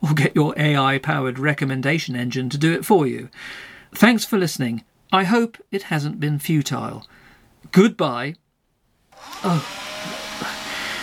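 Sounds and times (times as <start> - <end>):
speech: 0.1 - 8.4, 9.2 - 10.5
leaf blower running: 9.2 - 11.0.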